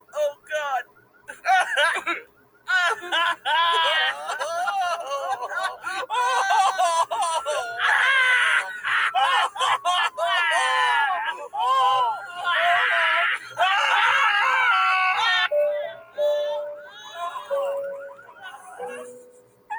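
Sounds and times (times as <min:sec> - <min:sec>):
laughter: 0:01.3 - 0:15.6, 0:16.2 - 0:19.7
person crying: 0:01.3 - 0:19.7.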